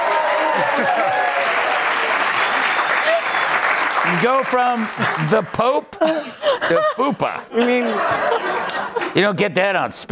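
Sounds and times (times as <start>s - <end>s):
audience applause: 0.0s - 5.8s
laughter: 0.4s - 1.6s, 5.0s - 9.4s
speech: 0.6s - 1.2s, 4.1s - 10.0s.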